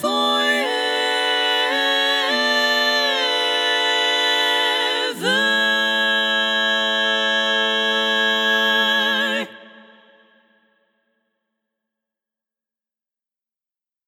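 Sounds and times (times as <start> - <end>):
tenor voices singing SSAA: 0.0 - 10.5.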